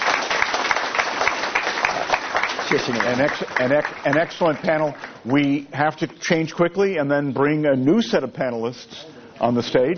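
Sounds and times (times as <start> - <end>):
audience applause for panelists: 0.0 - 5.2
speech: 2.8 - 9.9.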